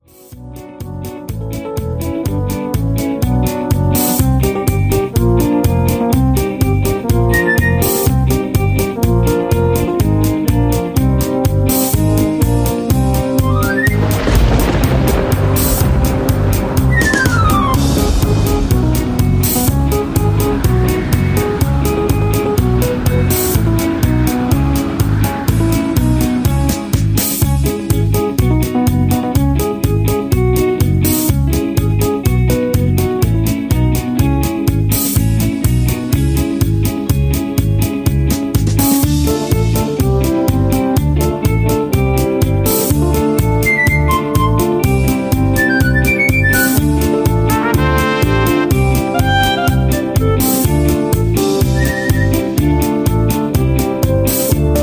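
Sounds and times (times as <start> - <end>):
instrumental music: 0.0 - 54.8.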